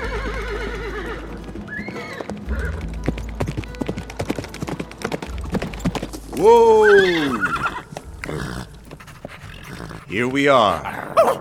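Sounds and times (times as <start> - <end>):
horse whinnying: 0.0 - 2.8, 6.4 - 11.4
horses' hooves clip-clopping: 0.0 - 10.9
speech: 6.4 - 7.4, 10.1 - 11.4.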